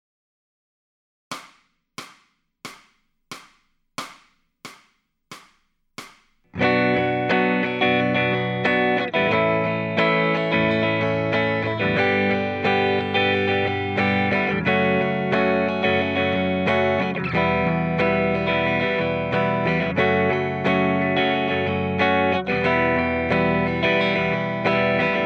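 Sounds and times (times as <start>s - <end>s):
electric guitar lead backing track: 6.6s - 25.2s.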